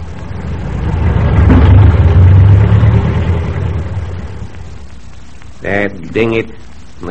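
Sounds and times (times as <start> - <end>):
car passing on a road: 0.0 - 5.0
traffic noise: 0.0 - 7.0
speech: 5.7 - 7.0.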